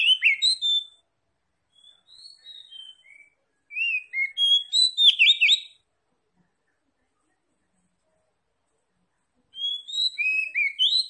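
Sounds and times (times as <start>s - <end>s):
oriental magpie-robin singing: 0.0s - 1.0s, 1.7s - 5.8s, 9.5s - 11.0s.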